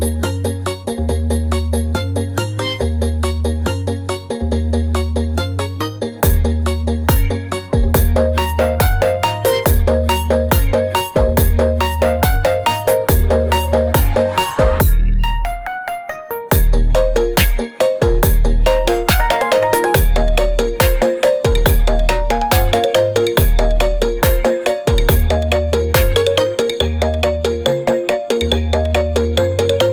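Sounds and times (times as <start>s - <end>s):
music: 0.0s - 29.9s.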